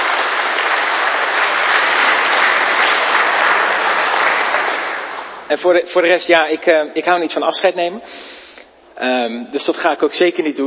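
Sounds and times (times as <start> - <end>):
applause for a boys' team receiving a third-place trophy: 0.0 - 5.5
speech: 5.5 - 8.4, 9.0 - 10.6.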